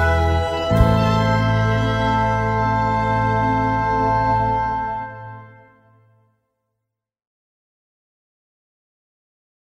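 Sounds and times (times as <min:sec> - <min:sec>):
karaoke backing track: 0:00.0 - 0:05.6.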